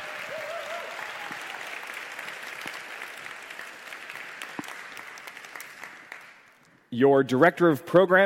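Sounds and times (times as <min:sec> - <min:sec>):
audience applause: 0:00.0 - 0:06.5
speech: 0:06.9 - 0:08.2.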